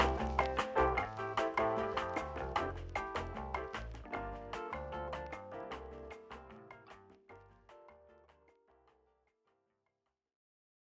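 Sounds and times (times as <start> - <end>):
bossa nova music: 0.0 - 8.6.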